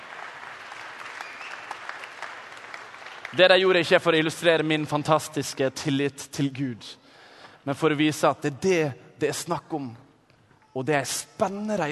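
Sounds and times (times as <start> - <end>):
audience applause: 0.0 - 3.8
speech: 3.3 - 7.0, 7.6 - 10.0, 10.8 - 11.9.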